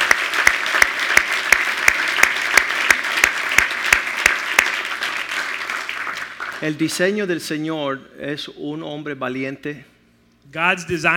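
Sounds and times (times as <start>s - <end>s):
audience applause: 0.0s - 6.7s
rhythmic sharp claps: 0.0s - 6.8s
speech: 6.6s - 11.1s.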